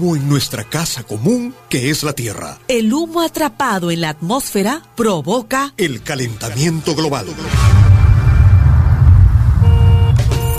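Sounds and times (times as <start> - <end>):
speech: 0.0 - 7.8
car engine rumbling: 7.8 - 10.5
car horn blaring: 9.6 - 10.5.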